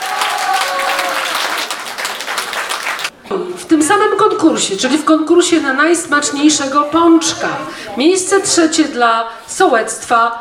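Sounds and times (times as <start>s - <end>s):
audience applause: 0.0s - 3.1s
speech: 3.9s - 10.3s.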